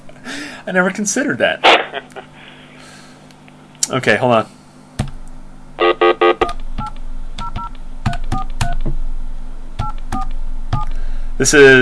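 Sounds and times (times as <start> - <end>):
steady low hum: 0.0 - 11.8
speech: 0.7 - 2.4, 3.9 - 4.6, 11.4 - 11.8
short buzzy tones: 5.8 - 6.6.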